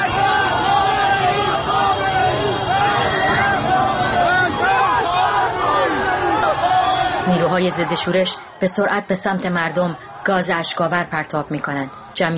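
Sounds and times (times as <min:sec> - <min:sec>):
protest crowd suddenly shouting: 0:00.0 - 0:12.3
speech: 0:07.5 - 0:12.3.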